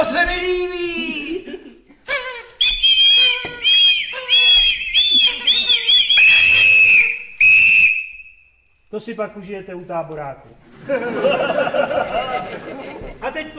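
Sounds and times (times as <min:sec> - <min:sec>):
laughter: 0:01.0 - 0:02.2, 0:10.7 - 0:13.5
party blower toy being blown: 0:01.9 - 0:08.5
speech: 0:09.1 - 0:13.5.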